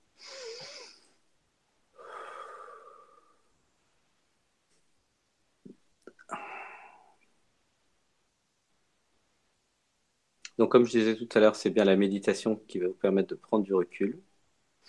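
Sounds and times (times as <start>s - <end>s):
deep breath during meditation: 1.9s - 3.6s, 6.2s - 7.3s
speech: 10.6s - 14.3s.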